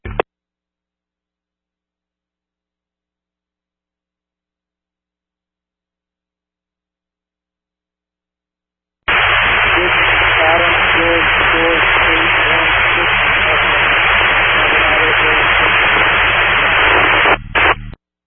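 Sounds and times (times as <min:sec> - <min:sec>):
radio static: 0:09.1 - 0:18.0.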